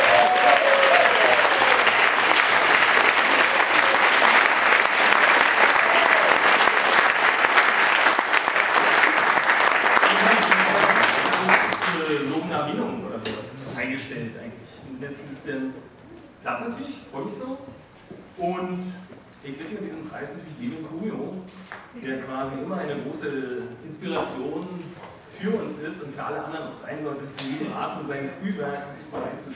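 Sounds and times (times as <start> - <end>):
audience applause: 0.0 - 12.2
speech: 16.5 - 29.5.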